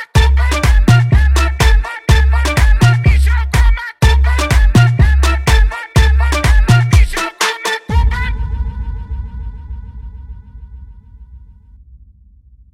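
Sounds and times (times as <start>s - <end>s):
mega funk automotivo music: 0.0s - 8.4s.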